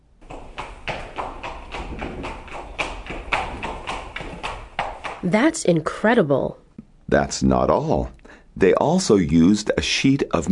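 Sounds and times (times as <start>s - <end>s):
coconut shells imitating galloping horse hooves: 0.2s - 5.4s
speech: 5.2s - 10.5s.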